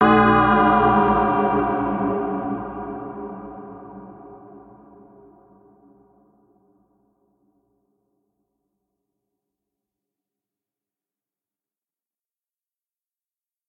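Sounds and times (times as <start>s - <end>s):
dark bell pitch bend: 0.0s - 4.4s.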